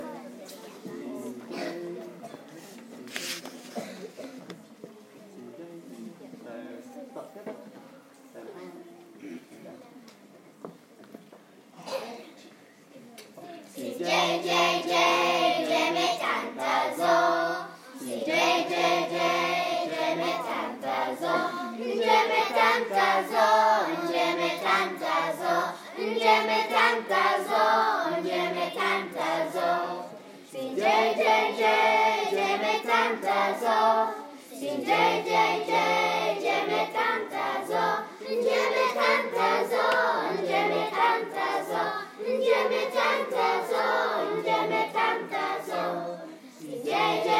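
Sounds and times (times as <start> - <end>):
choir singing: 13.8 - 47.3.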